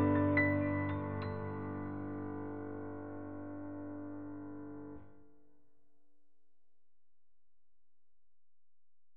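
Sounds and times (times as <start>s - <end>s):
Yamaha CFX grand piano: 0.0s - 5.2s.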